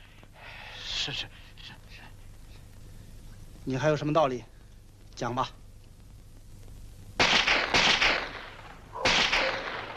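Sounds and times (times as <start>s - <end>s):
speech: 1.0s - 1.8s, 3.6s - 4.5s, 5.2s - 5.6s
gunshots: 7.2s - 9.9s.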